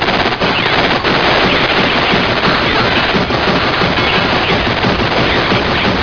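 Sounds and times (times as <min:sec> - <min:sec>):
gunshot: 0:00.0 - 0:06.0.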